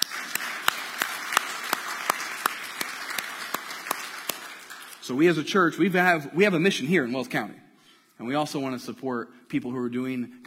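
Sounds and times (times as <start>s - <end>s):
audience clapping: 0.0s - 5.2s
speech: 5.1s - 7.6s, 8.2s - 10.4s.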